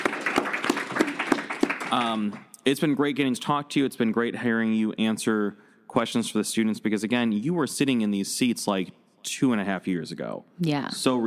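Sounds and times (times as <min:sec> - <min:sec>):
audience clapping: 0:00.0 - 0:03.2
speech: 0:01.9 - 0:11.2.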